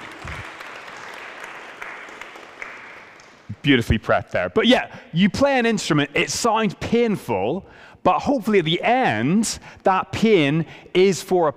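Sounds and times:
audience applause: 0.0 - 3.5
speech: 3.6 - 11.5.

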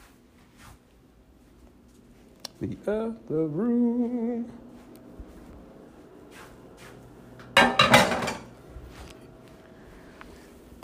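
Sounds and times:
speech: 2.6 - 4.6
cooking pan and dishes clattering: 7.5 - 8.5.

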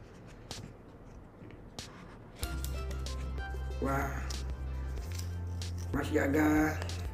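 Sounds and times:
Apple MagSafe battery pack packaging paper and plastic crinkling and scraping: 2.4 - 7.0
speech: 3.8 - 4.3, 5.9 - 6.9.

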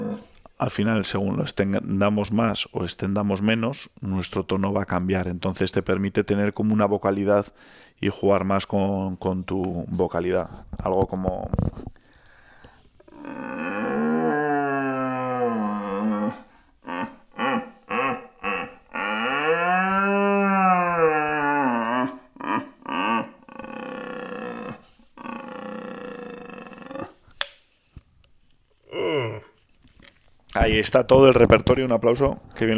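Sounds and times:
person imitating red deer rutting bellow: 0.0 - 0.4, 13.1 - 27.2, 28.9 - 29.6
speech: 0.2 - 11.9, 30.7 - 32.7.

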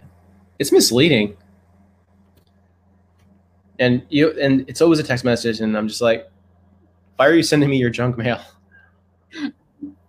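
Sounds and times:
low steady hum: 0.0 - 10.0
speech: 0.6 - 1.4, 3.8 - 6.4, 7.2 - 8.6, 9.3 - 9.6
computer mouse clicks: 2.2 - 2.6.

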